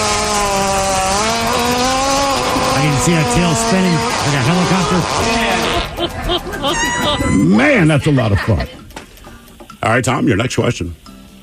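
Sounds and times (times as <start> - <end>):
hippopotamus fart: 0.0 - 6.0
speech: 3.0 - 8.8, 9.8 - 11.0
laughter: 3.9 - 9.0.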